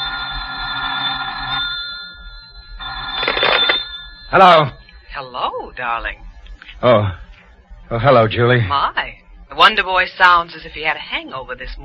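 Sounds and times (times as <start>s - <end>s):
telephone bell ringing: 0.0s - 6.1s
speech: 4.3s - 7.2s, 7.9s - 11.8s.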